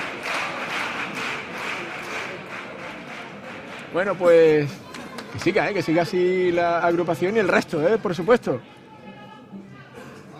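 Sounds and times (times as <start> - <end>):
carnival audience applauding during a cuplé: 0.0 - 6.3
speech: 3.9 - 8.8.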